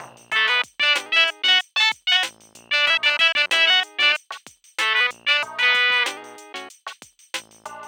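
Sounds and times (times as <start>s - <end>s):
groove music aircheck: 0.3s - 4.2s, 4.8s - 6.2s.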